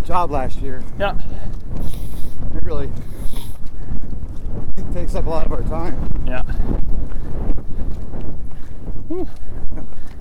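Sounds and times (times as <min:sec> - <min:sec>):
wind outdoors on a hill buffeting the microphone: 0:00.0 - 0:10.1
speech: 0:00.1 - 0:02.0, 0:02.7 - 0:03.2, 0:04.8 - 0:08.4, 0:09.1 - 0:10.1.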